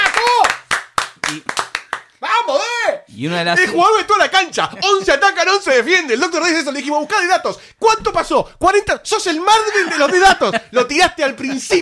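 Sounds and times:
hand claps: 0.0 - 2.2
speech: 1.3 - 1.6, 2.4 - 11.8
laughter: 3.6 - 5.3, 9.5 - 11.8.

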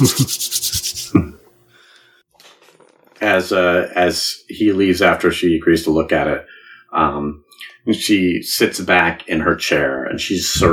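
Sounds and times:
speech: 0.0 - 1.3, 3.2 - 10.7
hands rubbing briskly together: 0.0 - 1.4.

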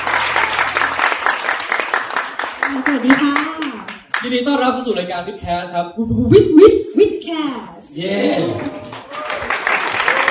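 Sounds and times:
audience applause: 0.0 - 4.4, 8.5 - 10.2
speech: 2.7 - 3.5, 4.2 - 8.8.

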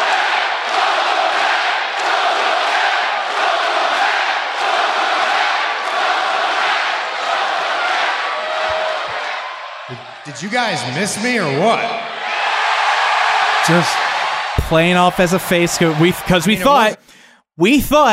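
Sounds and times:
wrestling arena crowd chanting welcome back at a WWE return: 0.0 - 10.8, 11.9 - 17.0
speech: 10.3 - 12.0, 13.6 - 14.0, 14.7 - 18.1.

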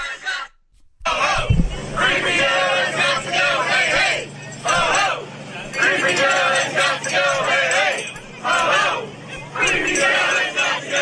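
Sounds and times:
large crowd chanting in unison outdoors: 0.0 - 11.0.

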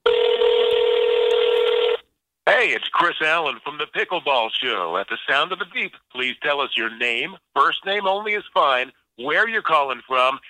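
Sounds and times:
phone number being dialed on iPhone speakerphone: 0.1 - 2.0
speech: 2.5 - 10.4.

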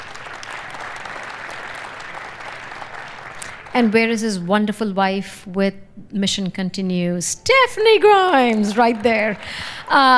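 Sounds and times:
audience applause: 0.0 - 4.0, 8.4 - 10.1
speech: 3.8 - 10.1.

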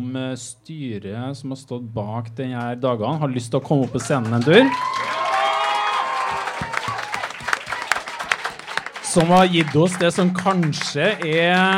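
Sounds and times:
speech: 0.0 - 5.1, 9.2 - 11.7
audience applause: 3.8 - 11.7
crowd noise and a few cheers: 3.8 - 11.7.

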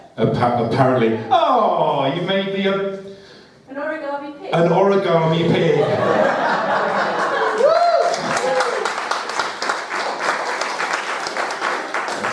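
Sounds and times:
speech: 0.2 - 3.1, 3.7 - 6.6
laughter: 5.4 - 8.7
audience applause: 6.7 - 12.3.

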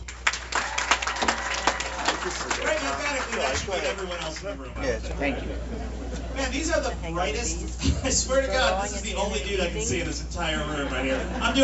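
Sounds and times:
audience applause: 0.0 - 4.7
laughter: 1.2 - 7.0, 7.7 - 9.3, 10.4 - 11.6
speech: 3.3 - 11.6.

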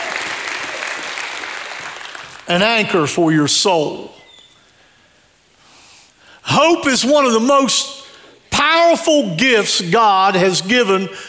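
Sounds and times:
audience applause: 0.0 - 2.5
speech: 2.5 - 4.2, 6.6 - 8.0, 8.6 - 11.2.

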